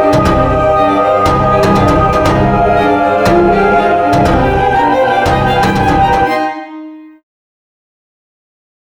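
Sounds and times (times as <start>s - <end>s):
8-bit arcade music: 0.0s - 6.9s.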